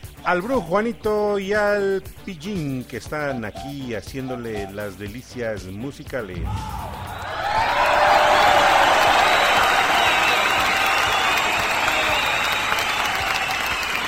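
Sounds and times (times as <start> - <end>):
speech: 0.2 - 6.9
audience applause: 7.1 - 14.0.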